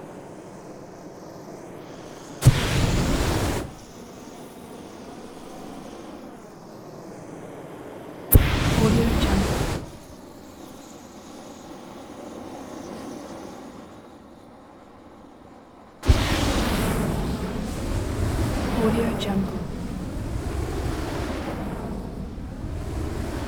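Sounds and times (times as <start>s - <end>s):
flamethrower burning close up in long burns and short bursts: 1.6s - 5.1s, 8.3s - 10.2s, 16.0s - 23.4s.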